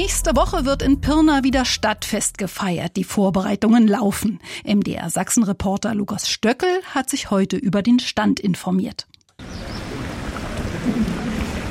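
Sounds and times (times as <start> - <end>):
speech: 0.0 - 9.5
fountains splashing on the Pirna market square: 9.4 - 11.6.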